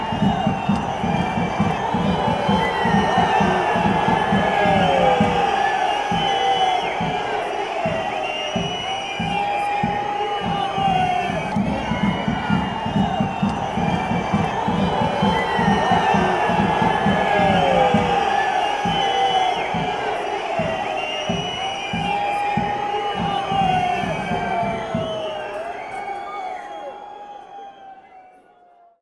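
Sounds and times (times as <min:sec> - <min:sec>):
crowd booing: 0:00.0 - 0:28.9.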